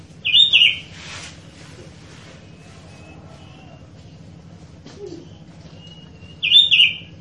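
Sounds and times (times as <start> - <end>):
Sooty-headed bulbul calls: 0.2 - 0.9, 5.8 - 7.1.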